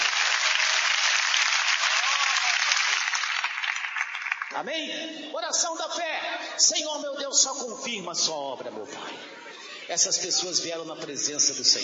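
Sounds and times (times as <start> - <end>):
audience clapping: 0.0 - 4.7
speech: 4.5 - 11.8
laughter: 8.7 - 10.6.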